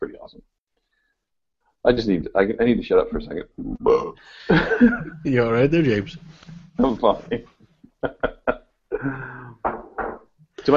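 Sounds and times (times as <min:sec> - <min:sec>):
speech: 0:01.8 - 0:08.2
burp: 0:03.6 - 0:04.2.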